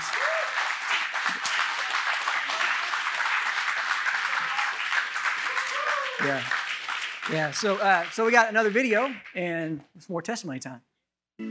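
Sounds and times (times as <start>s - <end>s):
audience applause: 0.0s - 9.5s
speech: 6.2s - 6.6s, 7.2s - 11.5s.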